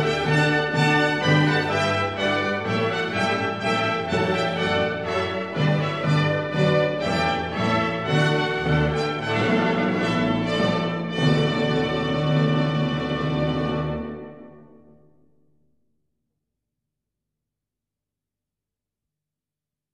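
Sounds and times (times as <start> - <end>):
orchestral minuet: 0.0 - 14.8.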